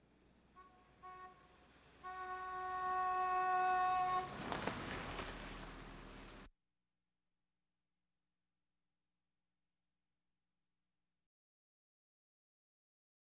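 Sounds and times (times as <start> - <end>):
various automobiles: 0.0 - 6.5.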